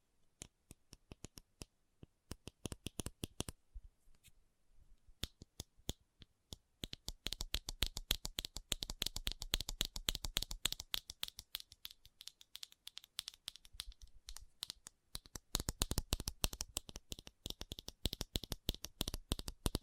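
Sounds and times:
fast tapping clicks: 2.3 - 3.6, 6.8 - 19.8.

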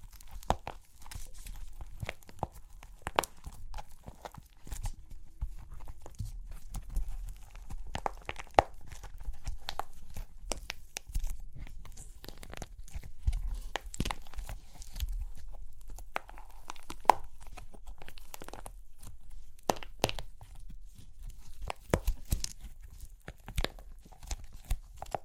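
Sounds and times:
dry clay cracking and crunching: 0.0 - 25.2.

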